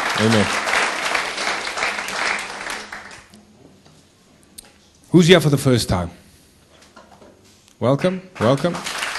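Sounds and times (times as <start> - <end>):
church congregation applauding after worship: 0.0 - 3.3, 7.9 - 9.1
speech: 0.2 - 0.7, 5.2 - 6.2, 7.8 - 8.9.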